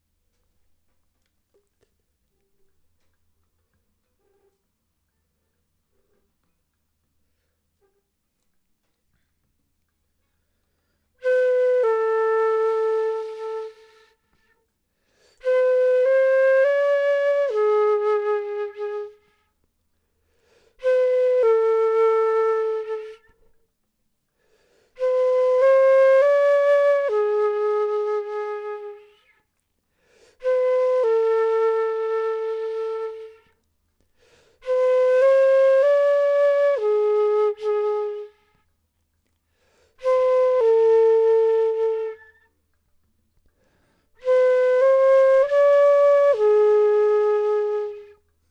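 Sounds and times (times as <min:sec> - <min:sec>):
flute: 0:10.9 - 0:19.7, 0:20.7 - 0:23.7, 0:24.8 - 0:33.7, 0:34.5 - 0:38.7, 0:39.8 - 0:42.7, 0:44.1 - 0:48.4.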